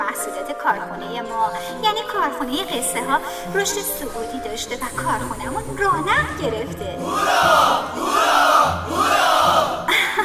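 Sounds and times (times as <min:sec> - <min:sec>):
speech: 0:00.6 - 0:09.0
crowd cheering hurrah: 0:07.0 - 0:09.8.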